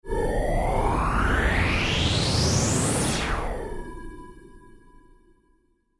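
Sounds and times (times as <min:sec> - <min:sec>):
space sound: 0:00.1 - 0:03.8.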